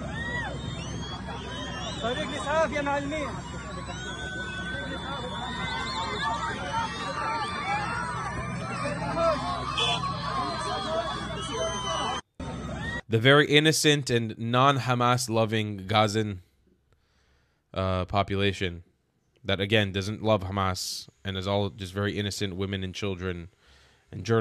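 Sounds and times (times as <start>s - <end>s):
large crowd cheering and shouting: 0.0s - 13.0s
high whistles from the crowd: 0.2s - 12.2s
speech: 2.0s - 3.6s, 13.1s - 16.4s, 17.7s - 24.3s.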